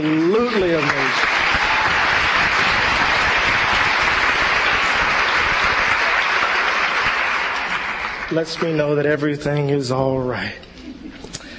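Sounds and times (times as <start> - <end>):
crowd applause: 0.0 - 9.2
speech: 8.3 - 10.7.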